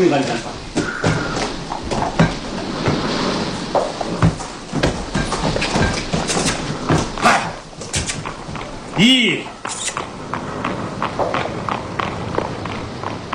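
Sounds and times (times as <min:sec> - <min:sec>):
speech: 0:00.0 - 0:00.6, 0:09.0 - 0:09.5
carriage wheels rumbling on road: 0:00.0 - 0:13.3
horses clip-clopping while pulling a carriage: 0:00.0 - 0:13.3.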